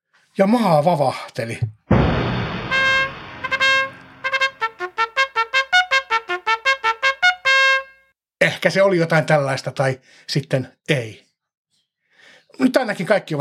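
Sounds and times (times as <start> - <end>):
speech: 0.4 - 1.8, 8.5 - 11.2, 12.5 - 13.3
horn blaring: 2.5 - 8.0.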